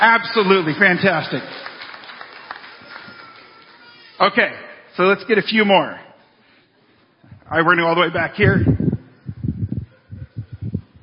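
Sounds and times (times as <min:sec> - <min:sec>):
audience clapping: 0:00.0 - 0:04.2
speech: 0:00.1 - 0:01.7, 0:04.2 - 0:06.0, 0:07.5 - 0:08.8.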